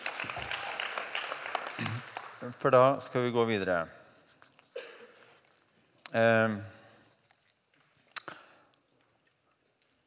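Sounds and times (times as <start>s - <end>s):
audience clapping: 0.0s - 3.3s
speech: 2.4s - 4.0s, 6.1s - 6.8s.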